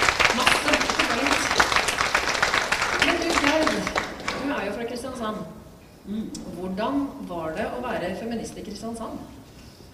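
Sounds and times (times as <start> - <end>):
audience applause: 0.0 - 4.7
speech: 4.6 - 9.4.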